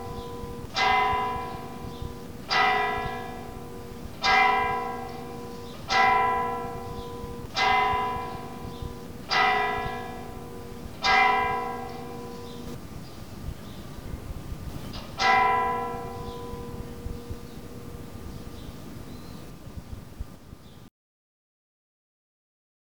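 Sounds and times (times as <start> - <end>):
church bells ringing for prayer and Angelus: 0.0 - 13.0, 14.9 - 19.0.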